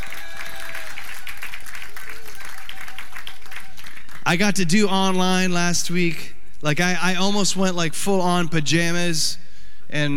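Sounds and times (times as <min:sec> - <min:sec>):
church congregation clapping: 0:00.0 - 0:04.7
speech: 0:04.3 - 0:10.1.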